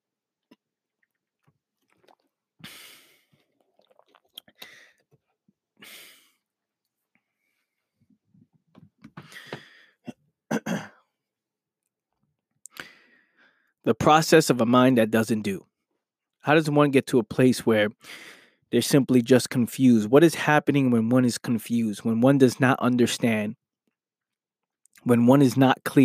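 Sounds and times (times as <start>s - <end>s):
person taking a drink of water: 0.4s - 5.2s
speech: 13.8s - 15.7s, 16.4s - 23.6s, 25.0s - 26.0s.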